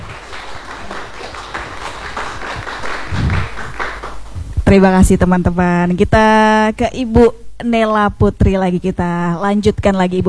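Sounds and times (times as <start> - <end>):
audience applause: 0.0 - 4.4
speech: 4.7 - 10.2.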